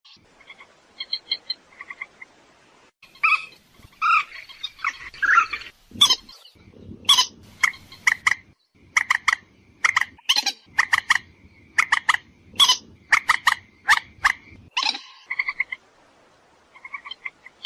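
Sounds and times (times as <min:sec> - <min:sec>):
purple swamphen screeching and clucking: 0:03.2 - 0:11.2, 0:11.8 - 0:15.8.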